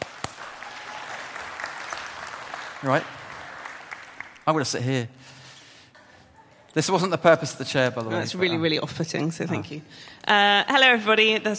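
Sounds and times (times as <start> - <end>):
audience applause: 0.0 - 4.6
speech: 2.8 - 3.2, 4.5 - 5.4, 6.8 - 11.5.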